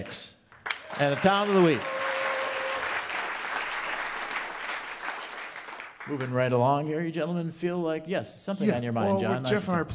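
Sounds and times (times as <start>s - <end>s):
speech: 0.0s - 0.3s, 1.0s - 1.9s, 6.1s - 9.9s
studio audience applause: 0.6s - 6.5s.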